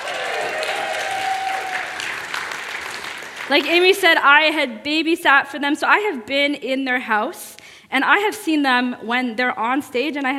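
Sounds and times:
audience applause and cheering: 0.0 - 3.7
speech: 3.5 - 10.3.

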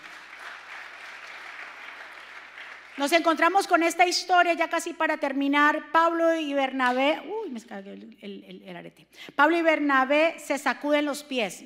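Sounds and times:
audience applauding loudly: 0.0 - 3.3
speech: 3.0 - 11.6.

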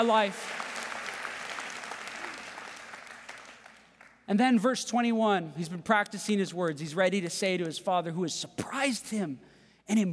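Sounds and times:
speech: 0.0 - 0.6, 4.3 - 10.1
audience clapping: 0.0 - 4.3.

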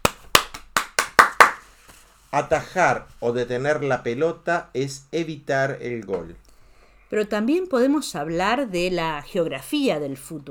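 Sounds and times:
applause: 0.0 - 1.7
speech: 2.3 - 6.4, 7.1 - 10.5.

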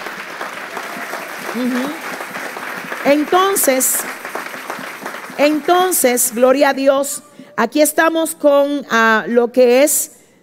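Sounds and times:
audience applauding: 0.0 - 6.4
speech: 1.5 - 2.1, 3.0 - 4.2, 5.4 - 10.2.

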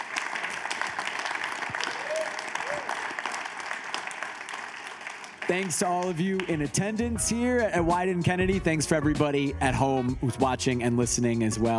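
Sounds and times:
audience round of applause: 0.0 - 6.9
speech: 5.5 - 11.7.

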